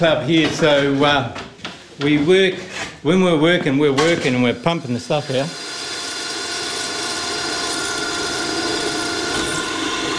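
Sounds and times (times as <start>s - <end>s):
speech: 0.0s - 1.4s, 2.0s - 5.6s
drilling in a trap-making workshop: 4.6s - 10.1s.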